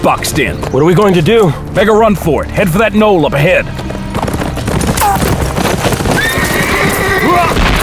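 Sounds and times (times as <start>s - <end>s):
speech: 0.0s - 3.9s
hooves clip-clopping: 0.0s - 7.8s
horse neighing: 6.1s - 7.6s.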